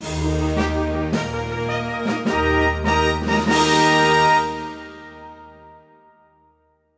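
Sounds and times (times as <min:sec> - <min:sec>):
world record fanfare: 0:00.0 - 0:06.4.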